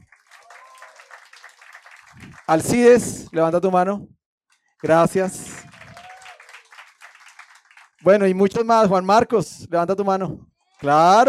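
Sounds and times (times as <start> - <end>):
audience applause: 0.0 - 3.0, 4.8 - 8.1
speech: 2.2 - 4.2, 4.8 - 5.5, 8.0 - 11.2.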